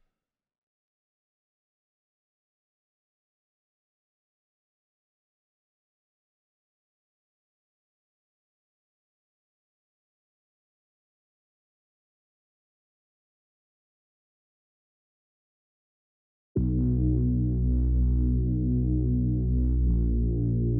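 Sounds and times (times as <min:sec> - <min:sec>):
bass: 0:16.6 - 0:20.7.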